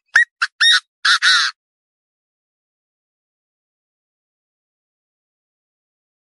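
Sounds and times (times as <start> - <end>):
partridge calling: 0.1 - 1.5.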